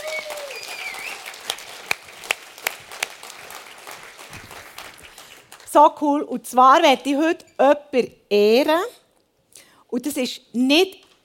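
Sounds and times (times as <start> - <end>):
whistle-like tone: 0.0 - 1.3
audience applause: 0.0 - 5.7
speech: 5.8 - 9.0, 9.9 - 11.2.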